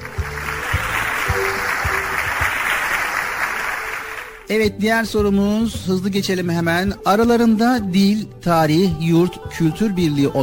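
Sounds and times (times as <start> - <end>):
group of children clapping: 0.0 - 4.5
faint rhythmic thumps: 0.0 - 5.9
speech: 4.5 - 10.4.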